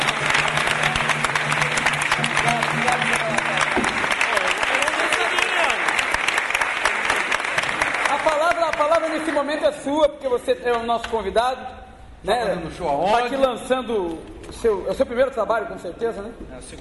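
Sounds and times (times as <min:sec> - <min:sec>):
audience applause: 0:00.0 - 0:09.6
speech: 0:09.9 - 0:16.7.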